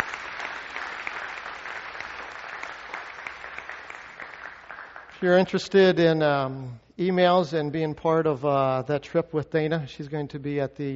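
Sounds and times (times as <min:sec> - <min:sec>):
church congregation applauding: 0:00.0 - 0:05.9
speech: 0:05.2 - 0:10.9.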